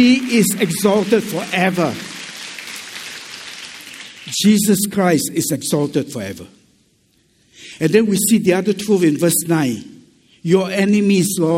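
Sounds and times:
speech: 0:00.0 - 0:02.2, 0:04.3 - 0:06.6, 0:07.8 - 0:11.5
audience applause: 0:00.0 - 0:04.4.

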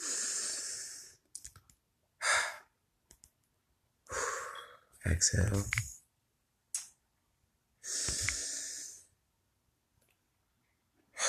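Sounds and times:
deep inhale during a guided breathing exercise: 0:00.0 - 0:01.2, 0:04.1 - 0:04.9, 0:07.8 - 0:09.1
faint clicks: 0:01.2 - 0:01.8, 0:03.1 - 0:03.6, 0:05.6 - 0:06.0
speech: 0:05.0 - 0:05.9.

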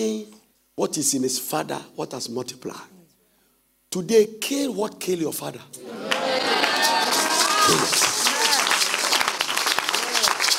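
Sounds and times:
speech: 0:00.0 - 0:03.0, 0:03.9 - 0:07.0, 0:07.7 - 0:08.1
audience clapping: 0:05.8 - 0:10.5.

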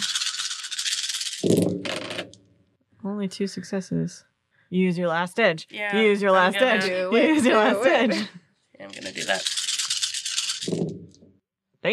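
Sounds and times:
dice rattling as they are rolled: 0:00.0 - 0:02.4, 0:08.9 - 0:11.2
speech: 0:01.4 - 0:01.6, 0:03.2 - 0:09.6, 0:10.6 - 0:11.2
laughter: 0:06.0 - 0:08.4.

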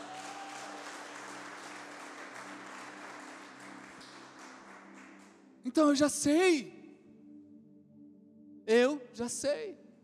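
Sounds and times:
audience applauding: 0:00.0 - 0:05.4
speech: 0:05.6 - 0:06.8, 0:08.7 - 0:09.8.

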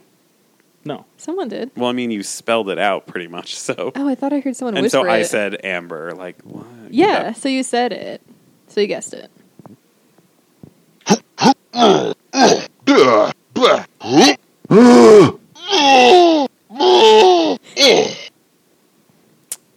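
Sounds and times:
speech: 0:00.8 - 0:09.4, 0:11.8 - 0:12.6
Donkey Kong video game voice clip gruff grunting calls: 0:11.0 - 0:18.3.

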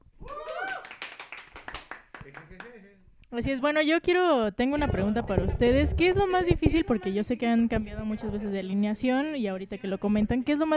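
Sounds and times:
studio applause for guests: 0:00.2 - 0:02.8
speech: 0:02.3 - 0:10.7.

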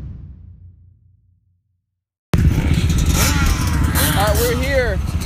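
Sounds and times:
quad ATV engines revving at a Short Course A quad race in Cache, Oklahoma: 0:02.3 - 0:05.2.

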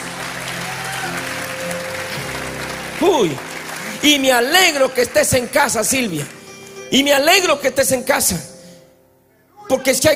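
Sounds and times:
audience applause: 0:00.0 - 0:06.6
speech: 0:03.0 - 0:08.5, 0:09.7 - 0:10.1.

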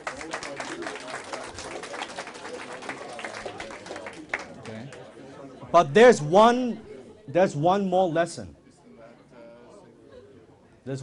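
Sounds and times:
audience applause: 0:00.0 - 0:05.0
speech: 0:05.7 - 0:08.6.

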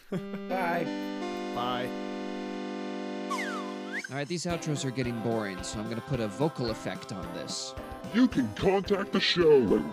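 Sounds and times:
speech: 0:00.1 - 0:01.1, 0:01.6 - 0:02.1, 0:04.1 - 0:09.9
slide whistle: 0:03.3 - 0:04.2.

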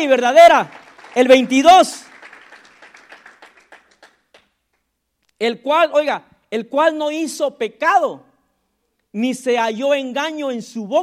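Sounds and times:
speech: 0:00.0 - 0:02.1, 0:05.4 - 0:08.3, 0:09.1 - 0:11.0
audience applause: 0:00.6 - 0:04.4.

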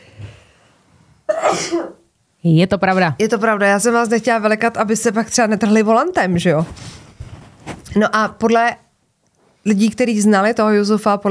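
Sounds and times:
person sneezing: 0:01.3 - 0:02.0
speech: 0:01.5 - 0:07.0, 0:07.9 - 0:08.8, 0:09.6 - 0:11.2.

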